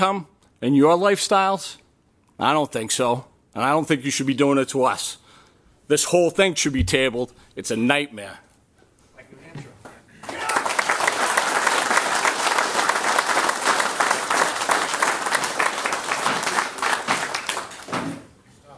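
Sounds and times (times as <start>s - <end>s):
speech: 0.0s - 1.8s, 2.4s - 5.2s, 5.9s - 8.5s
audience applause: 10.2s - 18.0s.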